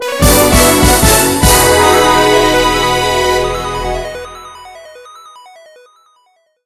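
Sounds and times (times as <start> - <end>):
level end jingle: 0.1 - 5.8.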